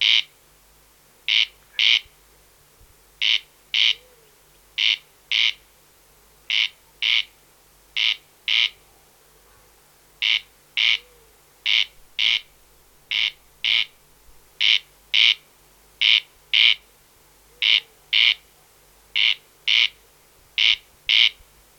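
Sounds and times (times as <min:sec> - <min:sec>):
Corn crake Crex crex singing rasping double notes: 0:00.0 - 0:00.4, 0:01.3 - 0:02.1, 0:03.2 - 0:05.6, 0:06.5 - 0:07.4, 0:08.0 - 0:08.8, 0:10.2 - 0:12.5, 0:13.1 - 0:14.0, 0:14.6 - 0:16.9, 0:17.5 - 0:18.5, 0:19.2 - 0:20.0, 0:20.6 - 0:21.4.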